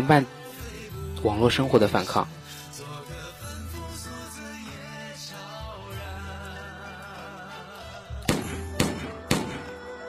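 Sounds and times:
speech: 0:00.0 - 0:00.4, 0:01.2 - 0:02.4
gunshots: 0:08.3 - 0:09.7.

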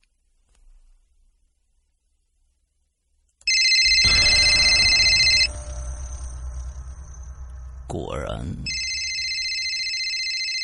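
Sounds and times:
telephone ringing: 0:03.5 - 0:06.4, 0:08.7 - 0:10.6.

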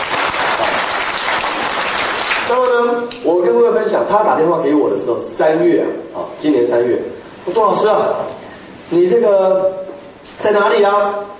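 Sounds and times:
crowd applauding: 0:00.0 - 0:02.9
speech: 0:02.5 - 0:09.8, 0:10.4 - 0:11.3.

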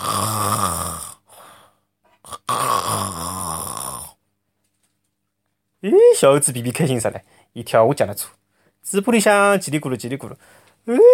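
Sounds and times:
voice imitating a pig snoring: 0:00.0 - 0:01.4, 0:02.2 - 0:04.2
speech: 0:05.8 - 0:11.1.

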